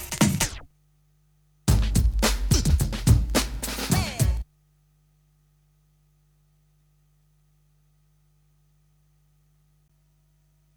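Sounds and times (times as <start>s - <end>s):
breakbeat drums: 0.0s - 0.7s, 1.7s - 4.4s.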